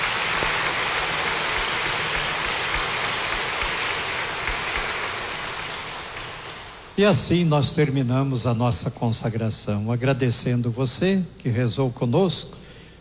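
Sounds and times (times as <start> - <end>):
applause: 0.0 - 7.0
speech: 7.0 - 12.6.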